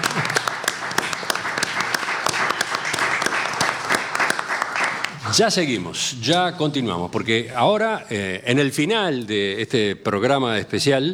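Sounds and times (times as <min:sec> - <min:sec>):
audience applause: 0:00.0 - 0:05.4
speech: 0:05.3 - 0:11.1.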